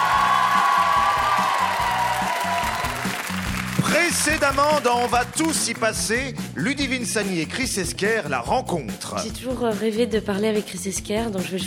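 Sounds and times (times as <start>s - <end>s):
studio audience cheering and applause with whoops: 0.0s - 6.2s
speech: 4.3s - 11.6s.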